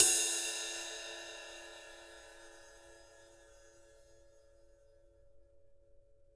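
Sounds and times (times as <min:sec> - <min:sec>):
jazz kit ride cymbal on acoustic drums: 0:00.0 - 0:04.6.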